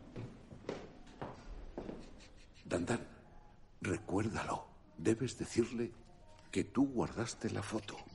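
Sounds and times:
footsteps of two people climbing the stairs of an apartment block: 0.0s - 2.0s
speech: 2.7s - 3.2s, 3.8s - 8.1s.

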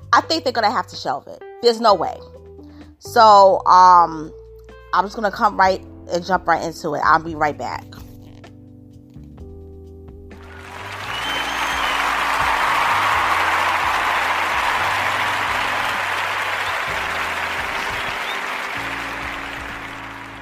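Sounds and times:
speech: 0.2s - 2.4s, 3.0s - 8.0s
applause sound effect: 10.4s - 20.4s.

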